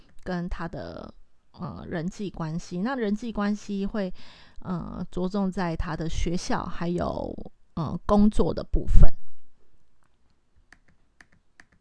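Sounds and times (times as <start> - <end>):
speech: 0.2 - 9.2
computer keyboard typing: 10.7 - 11.7.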